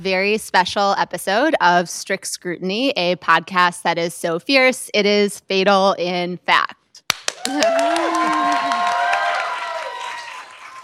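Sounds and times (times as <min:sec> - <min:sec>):
speech: 0:00.0 - 0:06.8, 0:07.4 - 0:08.2
live podcast audience cheering and applauding: 0:07.2 - 0:10.8.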